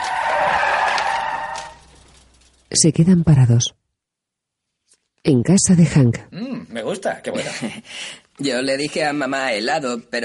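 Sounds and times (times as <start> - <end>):
car tires screeching as a car swerves: 0.0 - 2.1
speech: 2.8 - 3.8, 5.2 - 10.2
laughter: 7.3 - 7.9.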